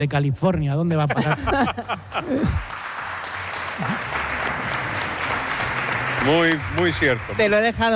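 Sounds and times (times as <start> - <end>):
speech: 0.0 - 2.8, 3.8 - 4.2, 6.2 - 7.9
laughter: 1.0 - 2.7
audience applause: 2.0 - 7.9.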